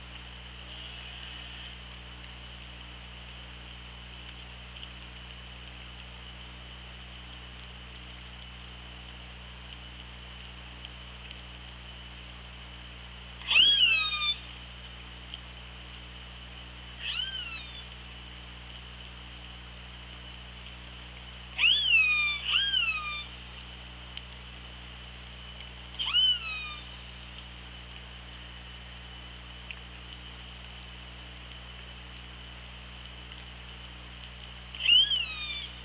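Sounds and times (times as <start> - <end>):
constant hiss: 0.0 - 35.8
steady low hum: 0.0 - 35.8
orca harmonic squeal call: 13.4 - 14.5, 17.0 - 17.9, 21.6 - 23.4, 26.0 - 27.1, 34.8 - 35.8.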